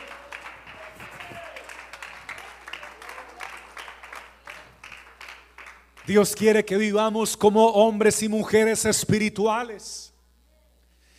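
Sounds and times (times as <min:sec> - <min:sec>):
audience applause: 0:00.0 - 0:06.1
speech: 0:06.1 - 0:10.1.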